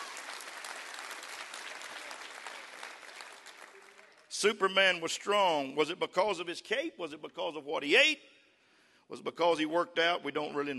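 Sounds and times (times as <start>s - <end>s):
audience clapping hands: 0.0s - 4.5s
speech: 4.4s - 8.4s, 9.1s - 10.7s.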